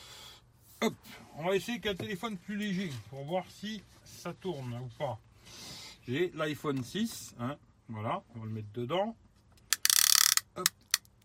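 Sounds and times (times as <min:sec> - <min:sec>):
speech: 0:00.8 - 0:09.2, 0:10.6 - 0:10.8
plastic ratchet clamp on a car phone holder tightening: 0:09.7 - 0:11.1.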